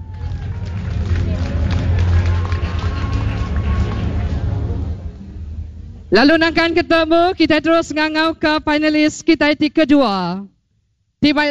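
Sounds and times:
cheers: 0.0 - 4.7
crowd applause: 0.0 - 5.2
speech: 6.1 - 10.5, 11.2 - 11.5.

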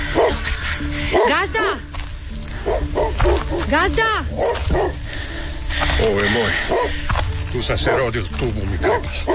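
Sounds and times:
dog barking and whimpering: 0.1 - 0.5, 1.1 - 1.5, 2.7 - 5.0, 6.7 - 6.9, 8.8 - 9.3
speech: 1.2 - 1.9, 2.7 - 4.9, 6.0 - 9.3.

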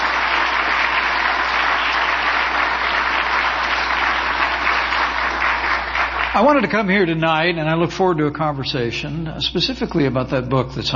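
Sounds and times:
audience round of applause: 0.0 - 7.1
speech: 6.4 - 10.9.

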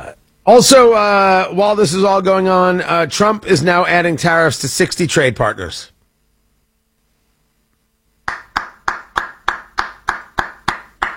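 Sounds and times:
speech: 0.5 - 5.9
hand clapping applause: 8.2 - 11.1.

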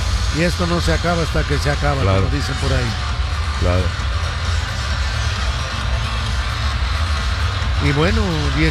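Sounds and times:
stadium crowd cheering at a match: 0.0 - 8.6
speech: 0.4 - 4.0, 7.8 - 8.6.

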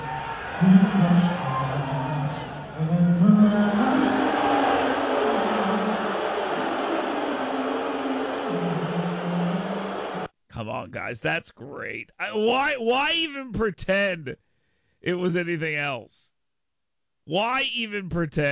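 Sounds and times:
crowd booing: 0.0 - 10.3
speech: 0.6 - 1.4, 10.7 - 14.4, 15.0 - 16.3, 17.3 - 18.5.

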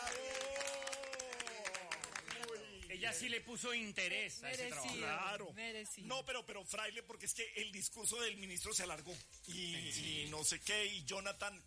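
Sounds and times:
group applause: 0.0 - 2.9
speech: 3.0 - 11.6.

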